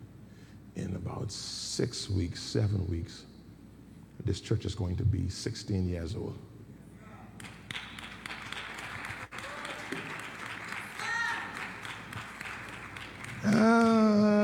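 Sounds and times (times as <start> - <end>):
speech: 0.8 - 3.3, 4.2 - 6.5
audience clapping: 7.4 - 14.4.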